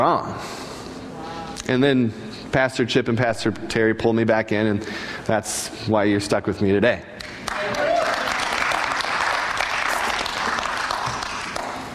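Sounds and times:
speech: 0.0 - 0.6, 1.6 - 7.8
audience clapping: 7.2 - 11.9.

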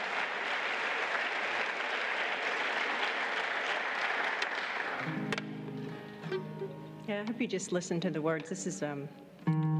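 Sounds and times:
crowd applause: 0.0 - 6.2
speech: 7.1 - 9.7.

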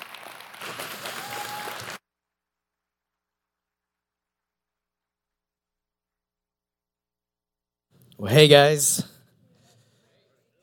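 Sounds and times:
audience applause: 0.0 - 2.0
speech: 8.2 - 9.1.

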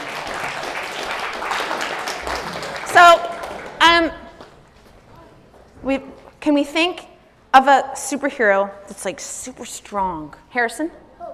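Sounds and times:
people clapping: 0.0 - 4.6
speech: 3.0 - 3.3, 5.9 - 7.0, 7.6 - 11.0.

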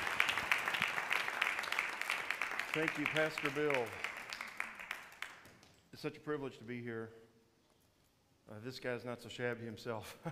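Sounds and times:
audience clapping: 0.0 - 5.8
speech: 2.8 - 4.1, 6.0 - 7.2, 8.5 - 10.2.

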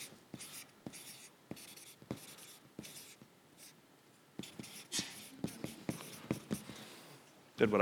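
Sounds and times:
3-inch-wide marker writing on a board: 0.0 - 3.8, 4.4 - 6.7.

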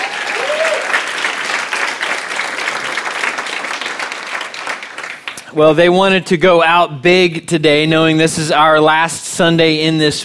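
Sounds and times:
person whooping: 0.0 - 1.0
audience applause: 0.0 - 5.4
speech: 5.5 - 10.2.

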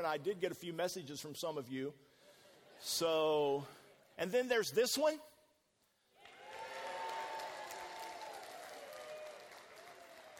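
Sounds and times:
speech: 0.0 - 2.1, 2.8 - 5.3
audience clapping: 6.2 - 10.3.

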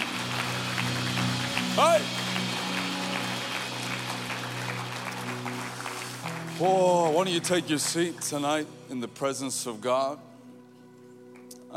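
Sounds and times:
audience clapping hands: 0.0 - 8.7
speech: 1.8 - 2.2, 6.6 - 10.3.

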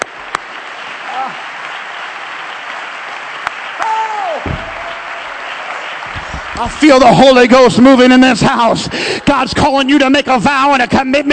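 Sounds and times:
audience clapping: 0.0 - 8.8
speech: 6.6 - 11.3.

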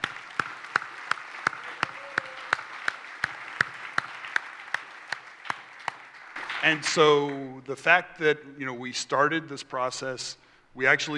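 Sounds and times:
audience clapping as a clap offering: 0.0 - 7.5
speech: 6.6 - 11.1.

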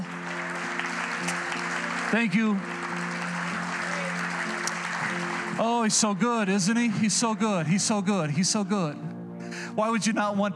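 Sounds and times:
audience hand clap of praise: 0.0 - 7.3
speech: 2.1 - 2.7, 5.6 - 9.2, 9.8 - 10.5.

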